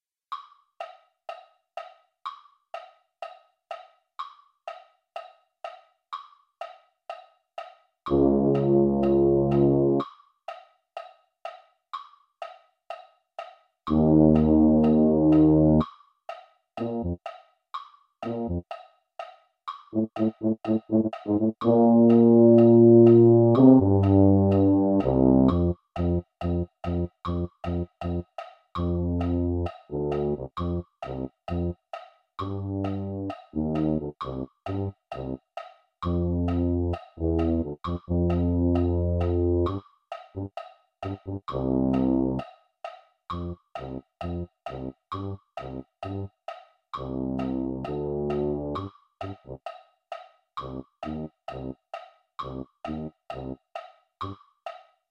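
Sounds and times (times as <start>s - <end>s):
tuba: 8.1s - 10.0s, 13.9s - 15.8s, 16.8s - 17.2s, 18.2s - 18.6s, 19.9s - 28.2s, 28.8s - 31.7s, 32.4s - 35.4s, 36.1s - 39.8s, 41.1s - 42.4s, 43.4s - 46.3s, 47.0s - 48.9s, 50.6s - 51.8s, 52.4s - 53.6s.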